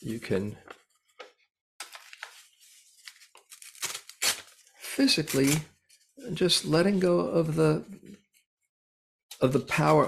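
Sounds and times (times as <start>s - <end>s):
speech: 0.0s - 0.7s, 5.0s - 8.2s, 9.4s - 10.0s
paper torn up during a New Year ritual: 3.0s - 5.7s.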